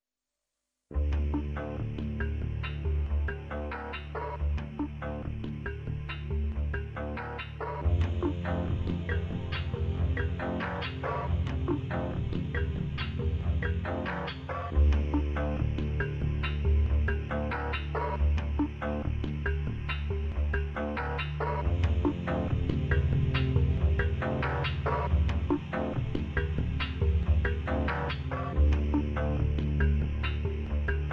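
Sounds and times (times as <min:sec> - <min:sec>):
noise: 0:00.3 - 0:31.1.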